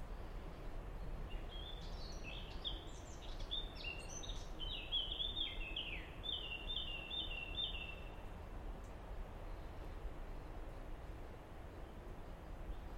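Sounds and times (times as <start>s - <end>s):
background hiss: 0.0s - 12.9s
common blackbird song: 1.3s - 8.2s.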